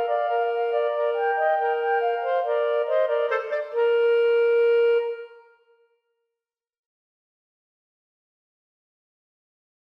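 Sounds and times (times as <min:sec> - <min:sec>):
clarinet duet playing a minuet: 0:00.0 - 0:05.6.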